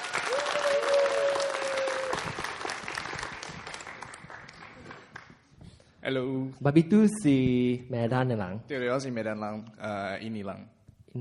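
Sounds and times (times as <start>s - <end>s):
audience applause: 0.0s - 5.4s
speech: 6.1s - 11.2s.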